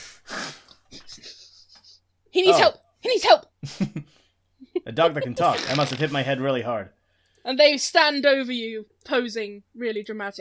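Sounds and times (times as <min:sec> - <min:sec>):
person imitating a wolf's big sniff: 0:00.0 - 0:00.8
speech: 0:02.4 - 0:04.1, 0:04.9 - 0:10.4.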